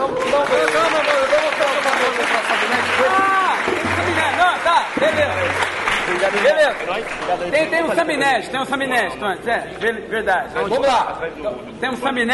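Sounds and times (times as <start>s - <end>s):
audience applause: 0.0s - 8.0s
speech: 6.8s - 12.3s.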